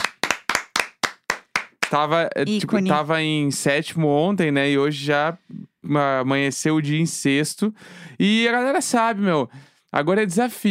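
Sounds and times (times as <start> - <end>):
single person clapping hands: 0.0 - 2.0
speech: 1.9 - 10.7.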